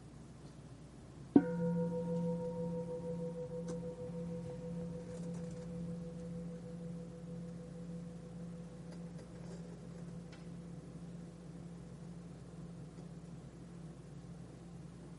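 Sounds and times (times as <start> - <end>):
meditation bell ringing: 1.4 - 12.9.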